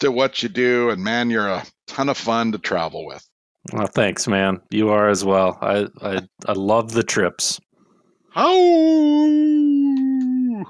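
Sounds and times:
speech: 0:00.0 - 0:07.6, 0:08.4 - 0:09.8
human imitating a wolf call: 0:08.4 - 0:10.6.

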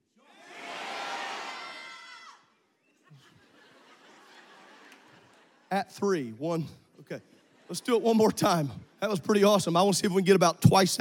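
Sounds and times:
crowd yelling their own first names: 0:00.1 - 0:02.6
laughter: 0:02.9 - 0:06.0, 0:07.1 - 0:09.5
speech: 0:05.7 - 0:10.9.

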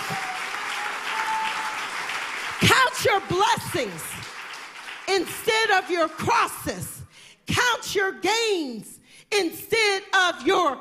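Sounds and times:
church congregation applauding in praise of God: 0:00.0 - 0:06.7
speech: 0:02.6 - 0:04.3, 0:05.1 - 0:10.7.

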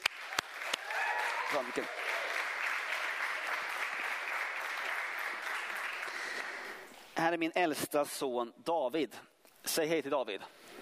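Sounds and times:
audience applause: 0:00.0 - 0:06.9
speech: 0:01.5 - 0:02.1, 0:07.2 - 0:10.6.

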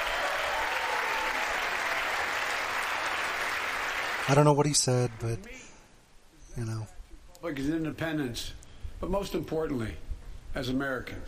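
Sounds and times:
audience clapping: 0:00.0 - 0:05.4
speech: 0:04.3 - 0:05.7, 0:06.6 - 0:11.2.

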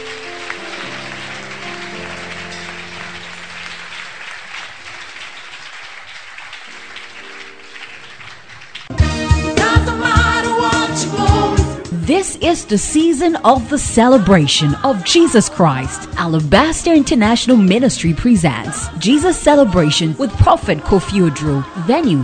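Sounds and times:
audience clapping hands: 0:00.0 - 0:11.5, 0:16.6 - 0:22.2
speech: 0:12.1 - 0:22.2.

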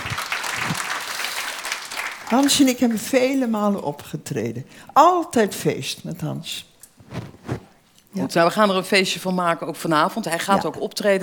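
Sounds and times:
audience applause: 0:00.0 - 0:02.3
speech: 0:02.3 - 0:07.3, 0:08.2 - 0:11.2.

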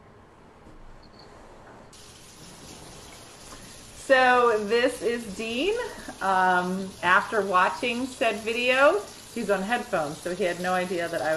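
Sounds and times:
tap water running into a sink while washing dishes: 0:02.0 - 0:11.3
speech: 0:04.1 - 0:11.3.

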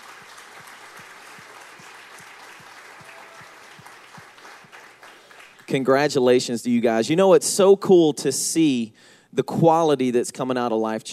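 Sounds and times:
warm crowd applause for graduating seniors at a church service: 0:00.0 - 0:05.7
speech: 0:05.7 - 0:11.1.

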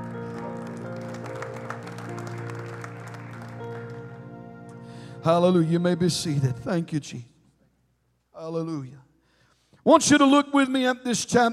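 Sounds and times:
audience hand clapping: 0:00.0 - 0:04.8
speech: 0:05.2 - 0:07.3, 0:08.4 - 0:09.0, 0:09.8 - 0:11.5.

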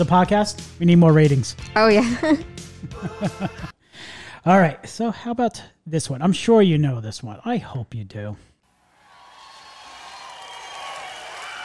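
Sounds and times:
speech: 0:00.0 - 0:08.5
laughter: 0:02.0 - 0:03.8
crowd applauding: 0:08.8 - 0:11.6.

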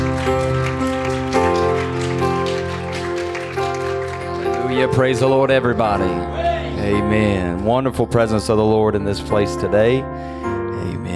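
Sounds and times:
audience clapping hands: 0:00.0 - 0:06.0
speech: 0:04.8 - 0:10.4.

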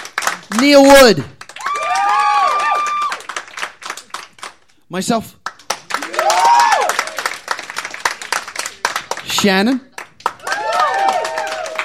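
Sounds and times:
scattered handclaps from a small crowd: 0:00.0 - 0:04.8, 0:05.4 - 0:11.8
speech: 0:00.5 - 0:01.4, 0:04.9 - 0:05.4, 0:09.4 - 0:09.9
audience whooping cheer: 0:01.5 - 0:03.4, 0:05.9 - 0:07.6, 0:10.3 - 0:11.8.

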